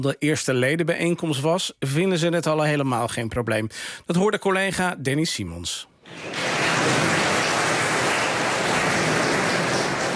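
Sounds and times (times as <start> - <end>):
speech: 0.0 - 7.2
applause at first Nieuw Sociaal Contract members' meeting in Amersfoort carriage shed: 6.1 - 10.1.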